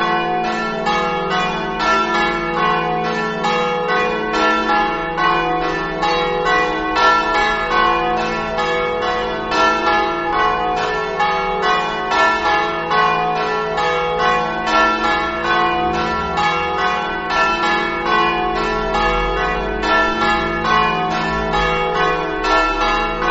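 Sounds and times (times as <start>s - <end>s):
church bells ringing: 0.0s - 23.3s.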